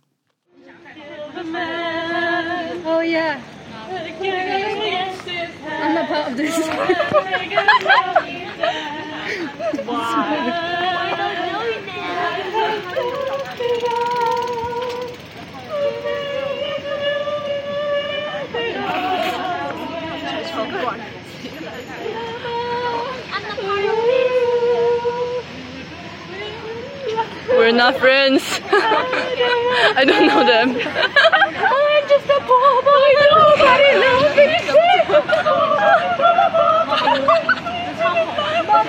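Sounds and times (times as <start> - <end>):
two tipsy women singing loudly: 0.6 - 38.8
speech: 1.4 - 1.8, 6.0 - 8.9, 27.6 - 31.3
laughter: 5.8 - 14.0, 28.4 - 31.9, 33.5 - 38.4.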